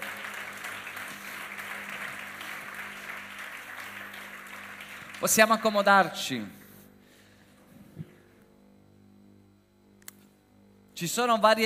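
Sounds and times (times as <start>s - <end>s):
audience applause: 0.0s - 6.1s
speech: 5.2s - 6.6s, 11.0s - 11.6s.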